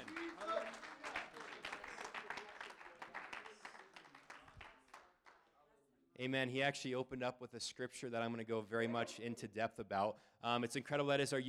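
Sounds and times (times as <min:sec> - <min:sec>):
crowd clapping: 0:00.0 - 0:05.6
speech: 0:06.2 - 0:11.4.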